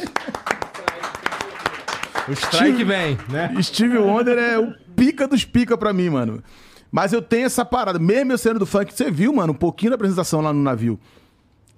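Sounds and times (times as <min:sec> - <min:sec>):
audience clapping: 0:00.0 - 0:04.2
speech: 0:02.3 - 0:11.2.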